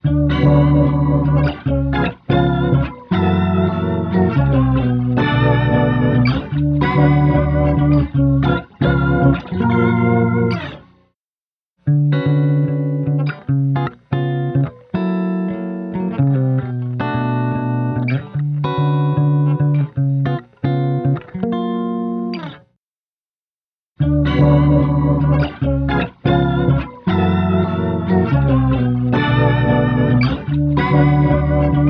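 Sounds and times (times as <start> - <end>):
guitar: 0.0 - 11.2, 11.8 - 22.8, 24.0 - 31.8.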